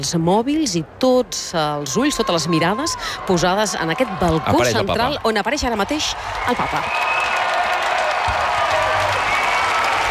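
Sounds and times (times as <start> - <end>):
speech: 0.0 - 7.3
large outdoor crowd applauding and cheering in plaza: 6.0 - 10.0.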